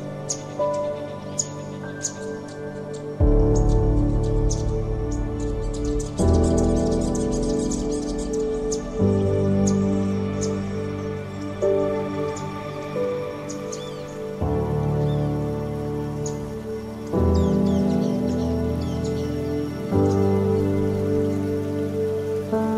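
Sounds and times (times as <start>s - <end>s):
bird: 0.0s - 22.7s
piano: 0.0s - 22.7s.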